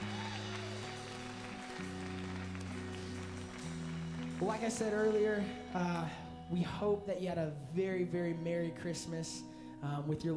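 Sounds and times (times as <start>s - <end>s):
audience clapping: 0.0s - 6.1s
organ or keyboard chords: 0.0s - 10.3s
speech: 4.4s - 10.3s.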